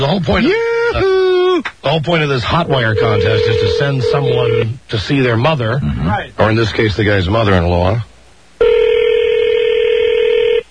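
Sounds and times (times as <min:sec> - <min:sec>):
speech: 0:00.0 - 0:01.1, 0:01.8 - 0:08.8
telephone tone while a number is being dialed: 0:02.7 - 0:04.7, 0:08.6 - 0:10.6.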